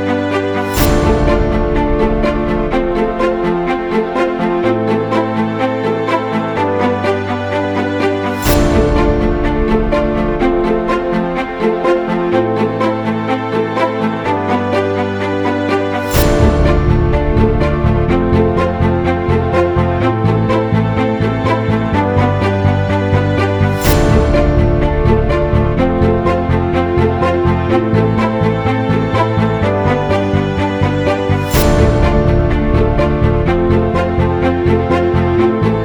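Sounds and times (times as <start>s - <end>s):
underwater orchestra: 0.0s - 35.8s.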